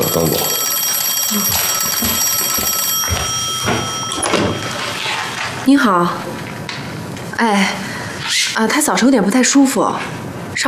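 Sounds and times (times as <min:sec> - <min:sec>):
telephone ringing: 0:00.0 - 0:05.9
speech: 0:00.1 - 0:00.6, 0:01.3 - 0:03.2, 0:05.7 - 0:06.5, 0:07.4 - 0:10.6.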